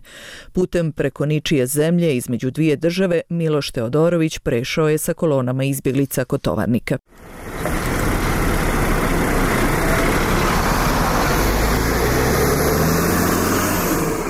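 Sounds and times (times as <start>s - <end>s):
speech: 0.5s - 7.8s
large bus engine idling: 7.1s - 14.2s
traffic noise: 7.1s - 14.2s.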